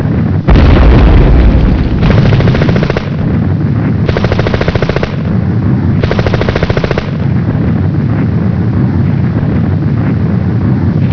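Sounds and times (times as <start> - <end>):
bombing explosions: 0.2 - 11.1.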